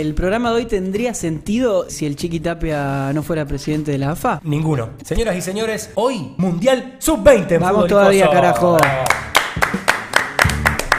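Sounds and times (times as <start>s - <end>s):
speech: 0.0s - 9.2s
people clapping hands: 8.4s - 10.9s.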